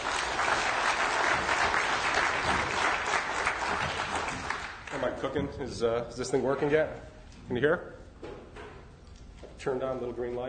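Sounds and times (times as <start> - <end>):
audience applause: 0.0 - 5.1
speech: 5.2 - 8.0, 9.6 - 10.4.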